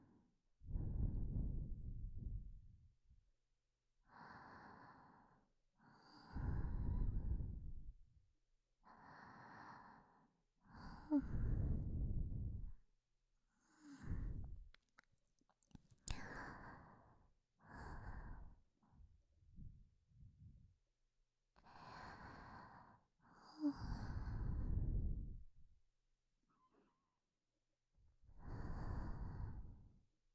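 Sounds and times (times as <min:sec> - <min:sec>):
person breathing in sleep: 0:00.1 - 0:02.5, 0:04.1 - 0:07.9, 0:08.8 - 0:12.8, 0:13.6 - 0:14.6, 0:16.1 - 0:18.6, 0:21.6 - 0:25.4, 0:28.4 - 0:30.0.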